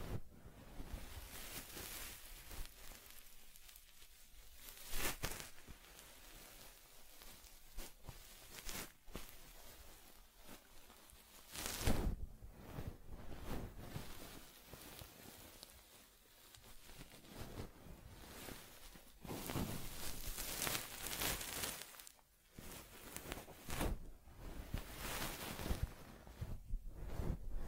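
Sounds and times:
teddy's fur being combed: 0.0s - 27.6s.

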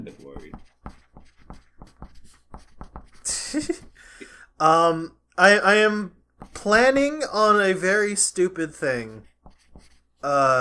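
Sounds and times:
pen writing on paper by hand: 0.0s - 3.9s, 9.2s - 10.1s
speech: 0.1s - 0.8s, 3.5s - 3.8s, 4.6s - 9.3s, 10.2s - 10.6s
laughter: 3.3s - 3.9s.

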